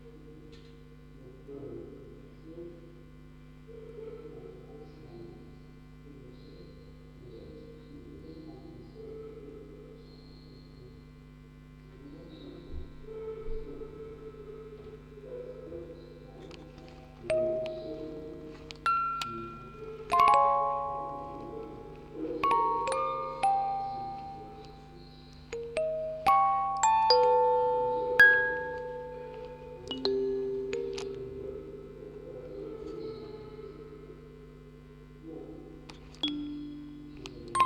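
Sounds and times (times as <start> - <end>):
four music boxes playing: 16.4 - 34.2, 35.9 - 37.6.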